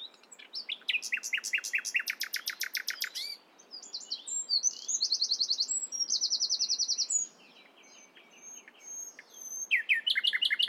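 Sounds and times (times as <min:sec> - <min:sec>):
Common nightingale Luscinia megarhynchos whistled song: 0:00.0 - 0:10.6.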